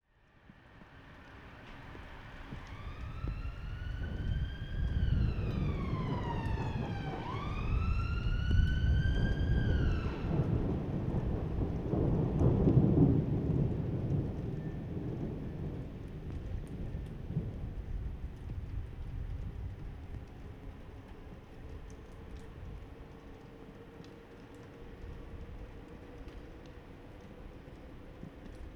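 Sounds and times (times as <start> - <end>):
thunder: 2.0 - 21.0.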